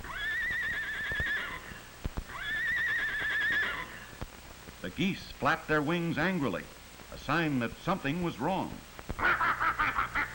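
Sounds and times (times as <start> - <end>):
horse whinnying: 0.0 - 4.1
speech: 5.0 - 9.3.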